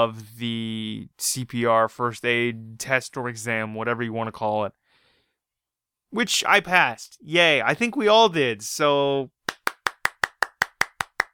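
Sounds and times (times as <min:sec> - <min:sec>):
speech: 0:00.0 - 0:04.8, 0:06.1 - 0:09.4
single person clapping to celebrate passing a CPR and first aid exam: 0:09.5 - 0:11.3.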